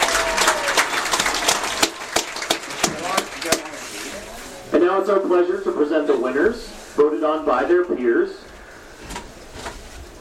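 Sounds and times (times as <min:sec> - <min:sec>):
crowd applauding homecoming nominees: 0:00.0 - 0:04.3
speech: 0:05.0 - 0:08.4.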